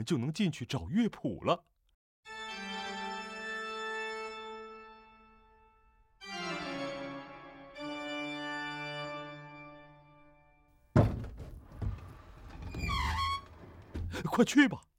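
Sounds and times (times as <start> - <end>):
speech: 0.0 - 1.7, 14.4 - 14.9
pipe organ notes: 2.3 - 10.7
small hidden door in a pipe organ room thudding open: 11.0 - 12.9
small hidden door in a pipe organ room creaking: 11.0 - 14.4.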